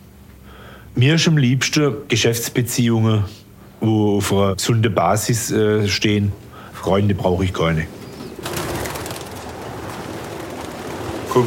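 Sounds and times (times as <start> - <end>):
speech: 1.0 - 8.0
pigeons cooing: 7.8 - 11.4.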